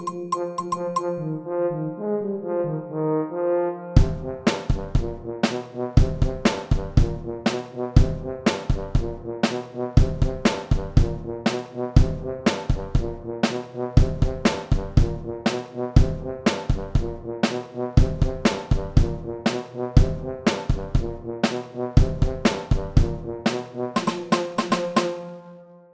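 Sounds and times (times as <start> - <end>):
bell: 0.0 - 1.3
tuba: 1.2 - 25.9.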